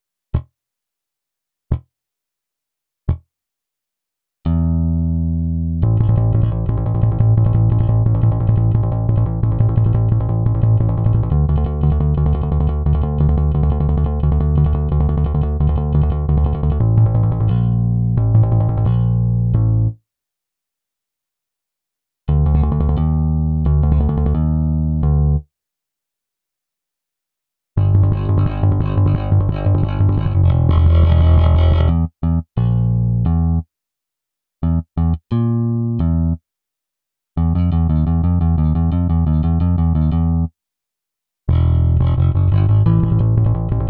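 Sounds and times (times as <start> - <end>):
bass: 0.3 - 0.5, 3.1 - 3.3, 4.4 - 20.1, 22.3 - 25.5, 27.8 - 33.7, 34.6 - 36.4, 37.4 - 40.6, 41.5 - 43.8.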